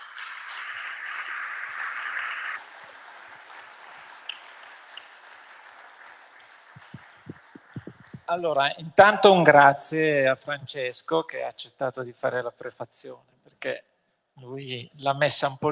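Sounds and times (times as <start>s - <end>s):
audience applause: 0.0s - 8.3s
low thumps: 6.8s - 8.3s
speech: 8.3s - 15.7s.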